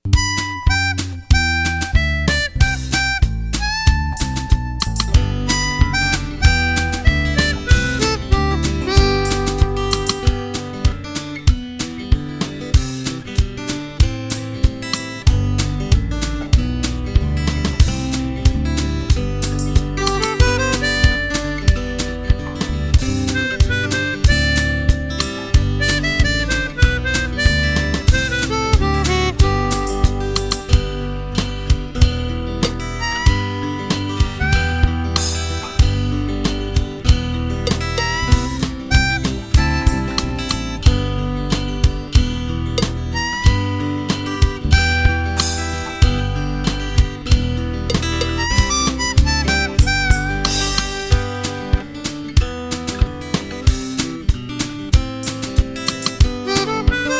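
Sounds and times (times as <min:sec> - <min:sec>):
blues music: 0:00.0 - 0:57.1.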